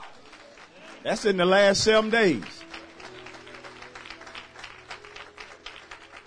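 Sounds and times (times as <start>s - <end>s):
audience applauding: 0.0s - 6.2s
speech: 1.0s - 2.6s.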